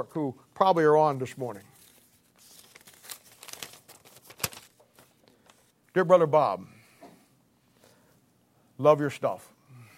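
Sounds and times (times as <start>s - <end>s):
speech: 0.0s - 1.7s, 6.0s - 6.8s, 8.8s - 9.5s
paper card being handled and unfolded: 1.2s - 5.7s.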